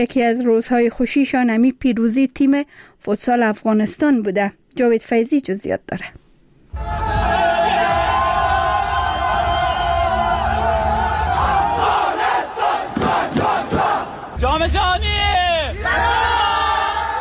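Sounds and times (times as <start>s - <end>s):
speech: 0.0s - 6.2s
crowd chanting and whooping: 6.8s - 14.4s
crowd cheering futsal victory: 6.8s - 14.4s, 15.6s - 17.2s.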